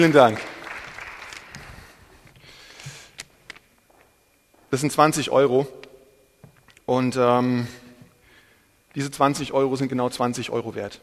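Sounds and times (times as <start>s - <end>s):
speech: 0.0s - 0.5s, 4.7s - 5.8s, 6.9s - 7.8s, 9.0s - 11.0s
audience applause: 0.0s - 2.0s.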